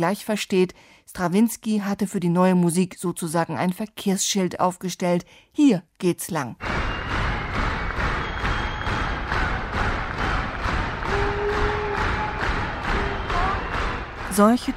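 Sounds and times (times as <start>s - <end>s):
speech: 0.0s - 6.9s, 14.4s - 14.7s
whistles and shouts: 6.6s - 9.5s, 11.0s - 14.2s
audience clapping rhythmically: 6.6s - 14.7s.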